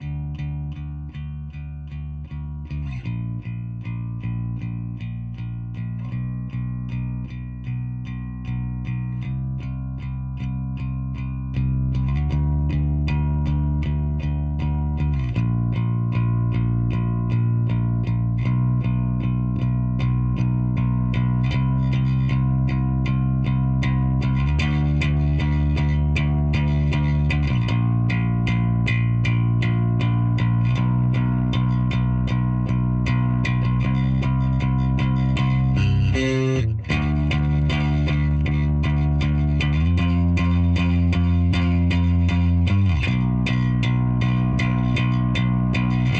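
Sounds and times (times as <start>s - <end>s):
bass build-up: 0.0s - 46.1s.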